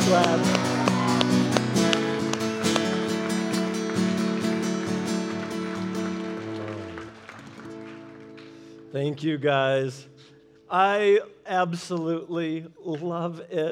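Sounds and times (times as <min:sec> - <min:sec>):
audience applause: 0:00.0 - 0:08.8
speech: 0:00.1 - 0:00.8, 0:08.9 - 0:13.6.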